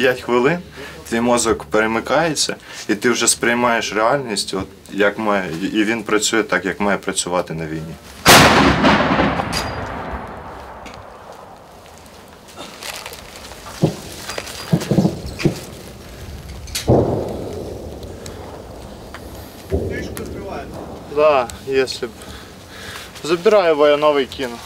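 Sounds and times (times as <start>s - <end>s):
speech: 0.0s - 9.8s, 21.7s - 22.3s, 23.2s - 24.6s
cannon firing at a drone: 8.2s - 11.7s, 16.8s - 21.9s.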